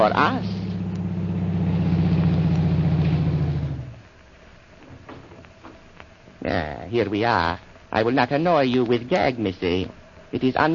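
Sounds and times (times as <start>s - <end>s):
speech: 0.0s - 0.6s, 6.4s - 10.7s
car engine idling: 0.0s - 4.2s.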